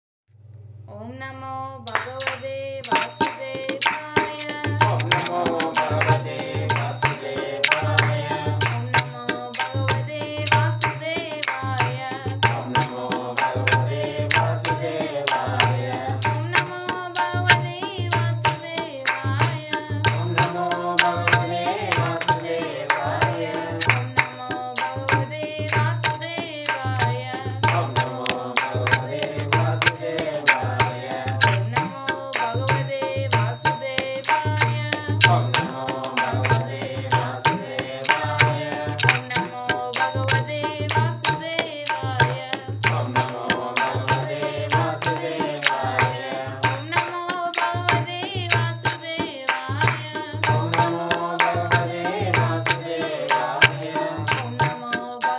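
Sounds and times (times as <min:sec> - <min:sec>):
chorus singing a bhajan devotional song: 0:02.0 - 0:55.3.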